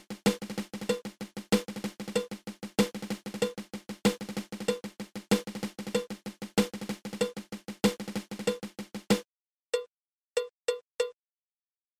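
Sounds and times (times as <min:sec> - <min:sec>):
snare drum drag paradiddle: 0:00.0 - 0:09.2.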